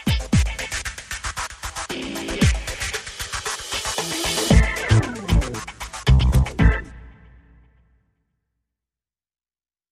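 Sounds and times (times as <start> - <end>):
percussion: 0.0 - 7.0
bass: 4.3 - 7.3.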